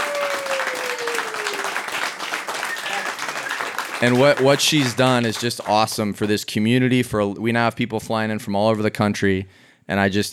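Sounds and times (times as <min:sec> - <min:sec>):
audience round of applause: 0:00.0 - 0:06.3
speech: 0:04.0 - 0:10.3.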